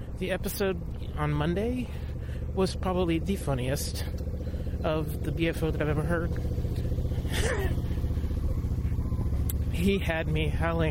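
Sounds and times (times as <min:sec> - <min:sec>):
speech: 0:00.2 - 0:04.2, 0:04.8 - 0:06.6, 0:07.3 - 0:07.8, 0:09.8 - 0:10.8
motorcycle passing by: 0:01.8 - 0:10.8.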